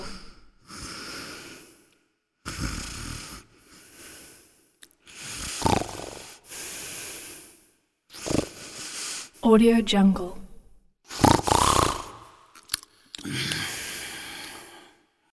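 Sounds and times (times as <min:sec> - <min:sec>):
person snoring: 0:00.7 - 0:01.9, 0:02.5 - 0:09.5, 0:11.1 - 0:15.0.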